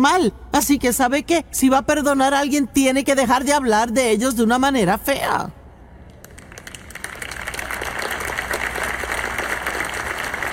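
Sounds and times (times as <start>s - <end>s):
speech: 0.0s - 5.6s
audience applause: 6.3s - 10.5s.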